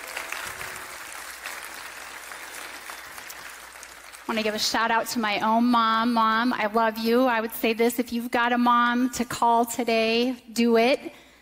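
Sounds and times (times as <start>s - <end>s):
audience round of applause: 0.0s - 4.6s
speech: 4.3s - 11.2s.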